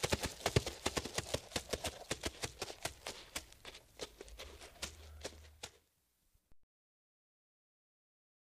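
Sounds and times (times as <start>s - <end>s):
horse running fast foley: 0.0s - 5.8s.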